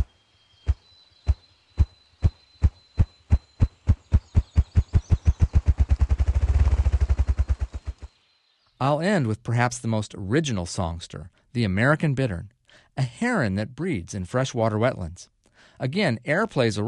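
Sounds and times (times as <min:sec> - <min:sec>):
male ruffed grouse drumming with its wings: 0:00.7 - 0:08.1
speech: 0:08.8 - 0:16.8.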